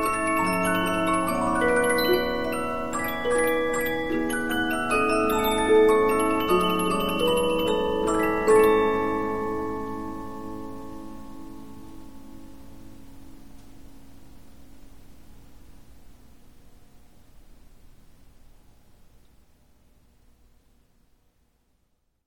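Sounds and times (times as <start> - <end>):
Polyphon 15-inch disc music box playing: 0.0 - 11.4.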